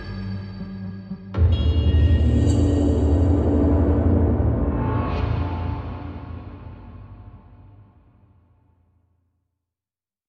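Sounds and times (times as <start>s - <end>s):
industrial terror hits and transitions: 1.4s - 8.0s.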